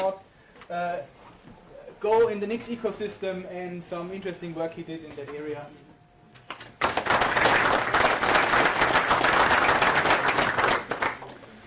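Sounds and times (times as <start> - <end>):
speech: 0.0 - 1.2, 2.0 - 5.9
audience clapping for a conference speaker: 6.5 - 11.6.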